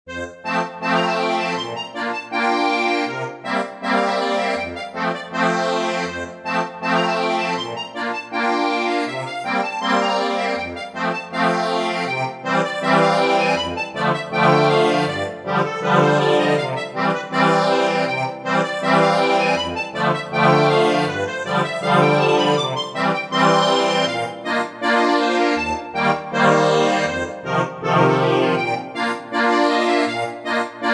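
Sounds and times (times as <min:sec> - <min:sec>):
polka accordion: 0:00.1 - 0:30.9.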